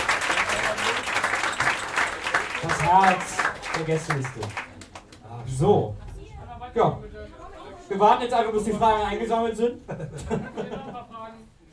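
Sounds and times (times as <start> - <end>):
audience applause at a live event: 0.0 - 5.4
speech: 2.6 - 4.6, 5.5 - 6.0, 6.8 - 7.1, 7.9 - 10.4
laughter: 9.7 - 11.2.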